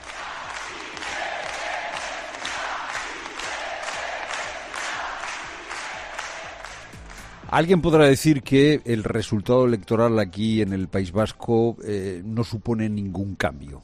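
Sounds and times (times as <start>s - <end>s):
large crowd chanting for independence: 0.0s - 6.9s
speech: 7.5s - 13.8s.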